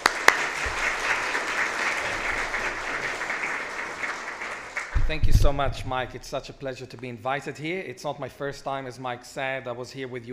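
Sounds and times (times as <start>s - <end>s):
round of applause: 0.0s - 5.6s
speech: 5.1s - 10.3s.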